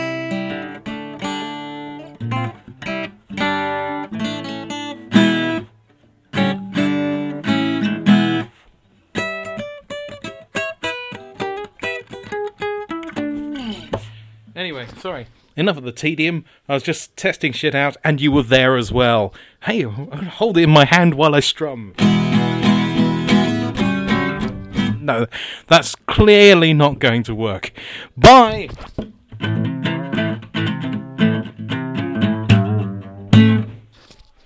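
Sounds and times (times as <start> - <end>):
acoustic guitar: 0.0 - 14.6, 22.0 - 25.6, 27.8 - 34.4
person speaking into an iPod microphone: 13.5 - 22.0, 24.4 - 29.0
person yelling: 28.2 - 28.7.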